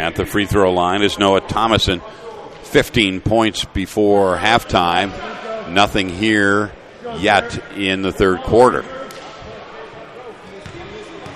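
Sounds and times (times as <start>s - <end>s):
commentator talking: 0.0s - 9.0s
speech: 0.0s - 9.0s
faint crowd noise: 0.0s - 11.3s
basketball dribbled left-handed at the free throw line: 10.6s - 11.3s.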